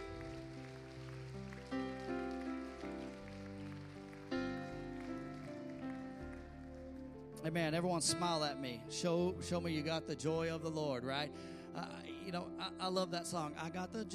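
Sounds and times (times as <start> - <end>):
audience clapping in praise: 0.0 - 7.4
speech: 7.4 - 14.1.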